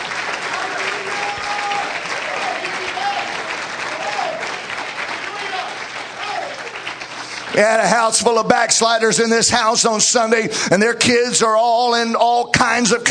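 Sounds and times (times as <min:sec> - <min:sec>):
audience clapping: 0:00.0 - 0:09.0
speech: 0:07.6 - 0:13.0.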